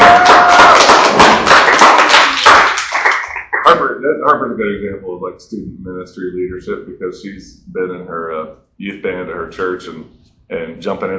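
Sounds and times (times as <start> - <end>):
audience applause: 0.0 - 3.7
speech: 3.7 - 11.1.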